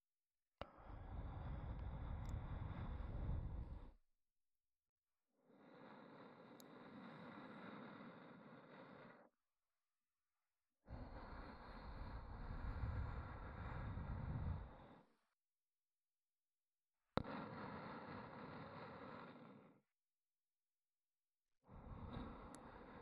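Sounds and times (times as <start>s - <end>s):
ASMR breathy sighs: 0.6s - 4.0s, 5.4s - 9.4s, 10.8s - 15.3s, 17.2s - 19.9s, 21.6s - 22.9s.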